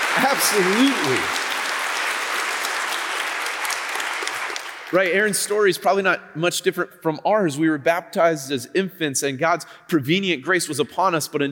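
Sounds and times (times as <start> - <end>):
crowd applause: 0.0 - 5.2
speech: 0.2 - 1.4, 4.9 - 11.4.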